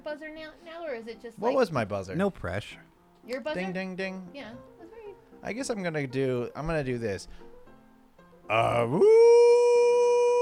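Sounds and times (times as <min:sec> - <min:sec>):
speech: 0:00.0 - 0:07.5, 0:08.5 - 0:09.5
person imitating an aooga horn: 0:08.5 - 0:10.4.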